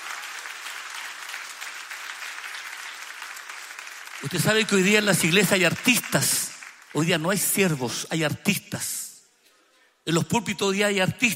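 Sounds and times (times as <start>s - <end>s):
audience applauding: 0.0s - 7.4s
speech: 4.2s - 9.0s, 10.1s - 11.3s.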